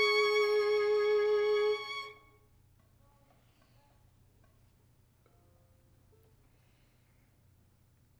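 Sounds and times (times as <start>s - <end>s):
violin: 0.0s - 2.3s.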